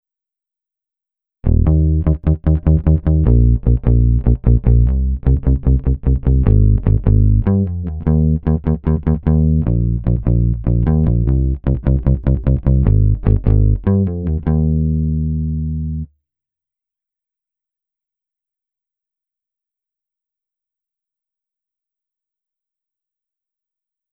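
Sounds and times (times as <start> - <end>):
bass: 1.4 - 16.1.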